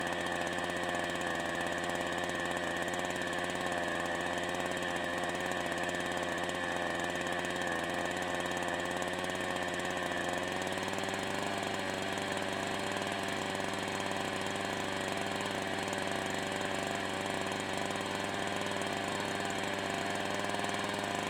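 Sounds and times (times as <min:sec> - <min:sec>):
large chainsaw starting and running at steady RPM, exhaust: 0:00.0 - 0:21.2.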